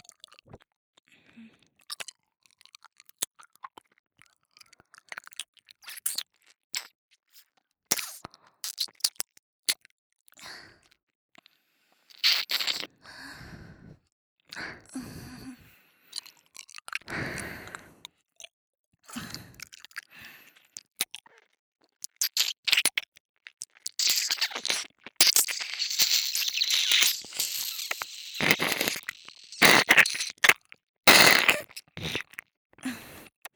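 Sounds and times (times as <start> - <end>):
ear licking sounds on left and right: 12.2 - 12.9, 22.2 - 23.0, 23.6 - 32.4.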